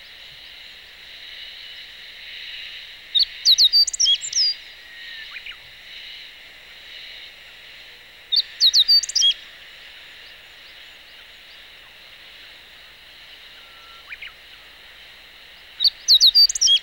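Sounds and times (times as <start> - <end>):
Meadow bunting calling: 8.4 - 9.4, 13.5 - 14.9, 15.6 - 16.8.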